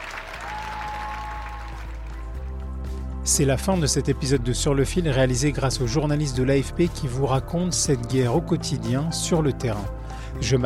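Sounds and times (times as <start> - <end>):
crowd thunderous applause: 0.0 - 2.3
speech: 3.3 - 10.6.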